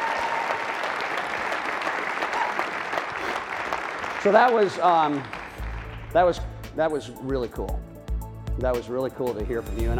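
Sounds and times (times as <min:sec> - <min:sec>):
crowd clapping: 0:00.0 - 0:06.6
speech: 0:04.2 - 0:05.4, 0:06.1 - 0:07.8, 0:08.6 - 0:09.9.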